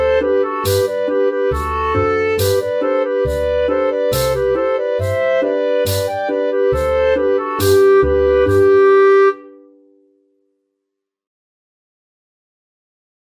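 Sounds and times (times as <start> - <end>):
Belgian schottische dance music: 0.0 - 9.5.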